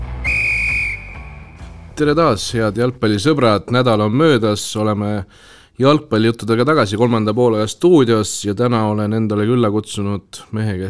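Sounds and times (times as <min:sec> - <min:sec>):
referee's final whistle in football: 0:00.2 - 0:01.7
speech: 0:02.0 - 0:10.8.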